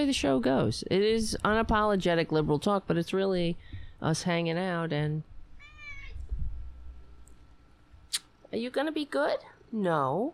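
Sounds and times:
speech: 0:00.0 - 0:05.3, 0:08.5 - 0:10.3
cat meowing: 0:05.6 - 0:06.2.

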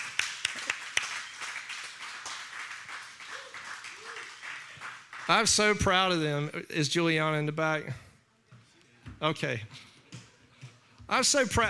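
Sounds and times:
audience clapping: 0:00.0 - 0:06.1
speech: 0:05.3 - 0:08.0, 0:09.2 - 0:09.9, 0:11.1 - 0:11.6.

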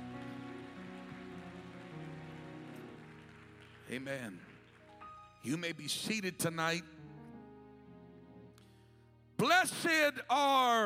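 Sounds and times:
audience applause: 0:00.0 - 0:05.3
low organ-like tones: 0:00.0 - 0:08.6
speech: 0:03.9 - 0:04.5, 0:05.4 - 0:07.0, 0:09.6 - 0:10.8.

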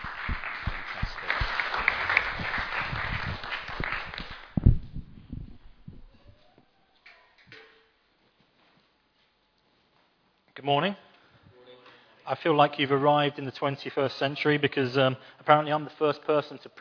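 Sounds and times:
audience clapping: 0:00.0 - 0:04.9
speech: 0:10.6 - 0:11.0, 0:12.3 - 0:16.7.

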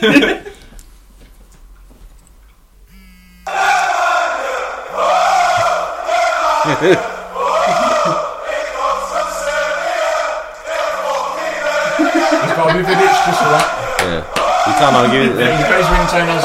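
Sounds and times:
speech: 0:00.0 - 0:00.4, 0:06.8 - 0:07.1, 0:12.7 - 0:16.4
laughter: 0:00.0 - 0:00.7, 0:06.4 - 0:09.6, 0:10.7 - 0:16.4
steady low pulsing tone: 0:02.9 - 0:03.5
phone ringtone of a football crowd chant: 0:02.9 - 0:16.4.

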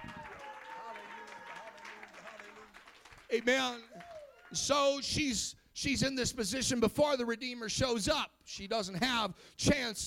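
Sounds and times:
people clapping: 0:00.0 - 0:04.8
speech: 0:03.3 - 0:10.0.

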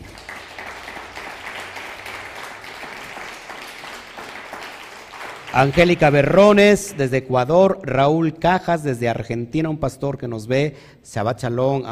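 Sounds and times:
audience applause: 0:00.0 - 0:07.1
speech: 0:05.5 - 0:11.9.

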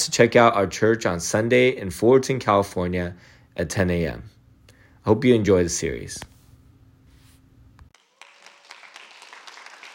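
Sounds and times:
speech: 0:00.0 - 0:04.3, 0:05.0 - 0:06.3
audience clapping: 0:07.9 - 0:09.9.

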